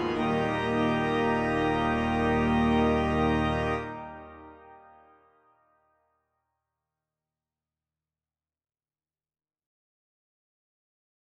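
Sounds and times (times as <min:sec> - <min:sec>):
organ: 0:00.0 - 0:05.1.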